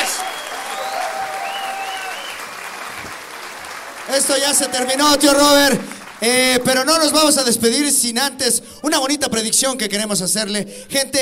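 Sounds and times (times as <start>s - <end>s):
applause: 0.0s - 7.4s
speech: 4.1s - 11.2s.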